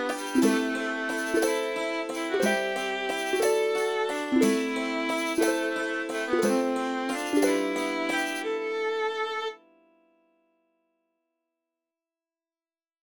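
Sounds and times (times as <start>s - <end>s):
medieval fantasy RPG music loop: 0.0s - 9.2s.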